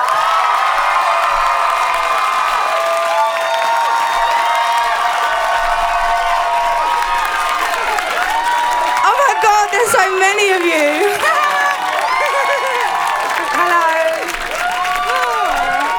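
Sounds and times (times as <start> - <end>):
New York City concert crowd shrieking and screaming: 0.0 - 15.9
laughter: 2.8 - 15.9.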